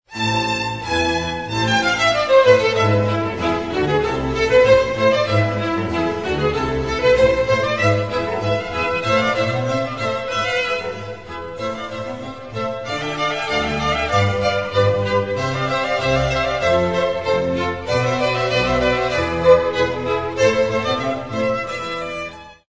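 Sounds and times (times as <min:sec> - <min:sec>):
classical concerto: 0:00.1 - 0:22.6.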